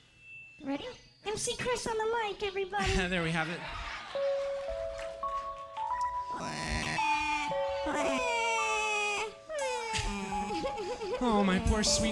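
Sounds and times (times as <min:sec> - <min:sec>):
speech: 0:00.6 - 0:04.4, 0:11.0 - 0:12.1
laughter: 0:02.9 - 0:05.4, 0:06.8 - 0:12.1
man imitating a crying baby: 0:06.3 - 0:12.1.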